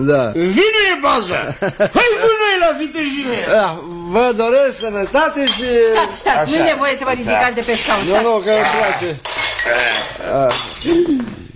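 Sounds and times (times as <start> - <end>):
speech: 0.0 - 11.4
laughter: 1.2 - 3.4
glass knocked over clinking on a table: 8.5 - 11.0.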